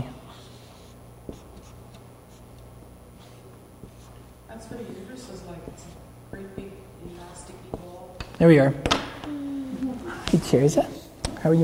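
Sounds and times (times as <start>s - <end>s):
pen scratching on paper drawing a picture: 0.3s - 2.6s
speech: 8.4s - 8.9s, 10.5s - 11.6s.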